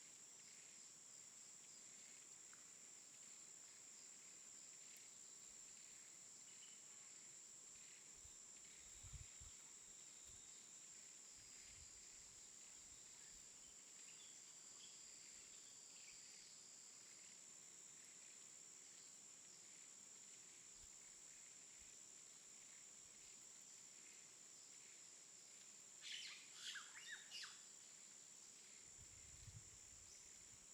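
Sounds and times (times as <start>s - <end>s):
jungle ambience in the afternoon: 0.0s - 30.7s.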